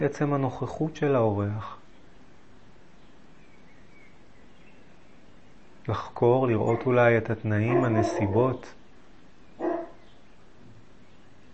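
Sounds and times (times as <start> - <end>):
speech: 0.0 - 1.8, 5.8 - 8.8
dog barking: 6.6 - 7.0, 7.6 - 8.6, 9.6 - 10.0.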